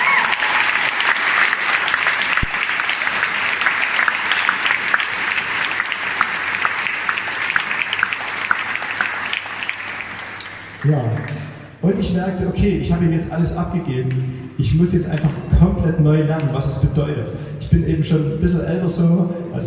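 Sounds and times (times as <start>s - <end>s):
audience applause: 0.0s - 11.6s
speech: 10.9s - 19.6s.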